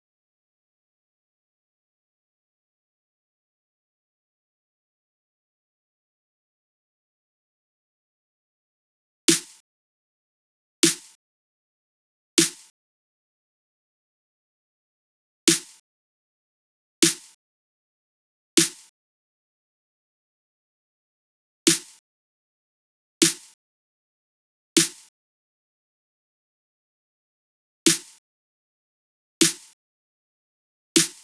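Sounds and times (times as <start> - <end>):
snare drums: 9.3 - 9.6, 10.8 - 11.2, 12.4 - 12.7, 15.5 - 15.8, 17.0 - 17.3, 18.6 - 18.9, 21.7 - 22.0, 23.2 - 23.5, 24.8 - 25.1, 27.9 - 28.2, 29.4 - 29.7, 31.0 - 31.2.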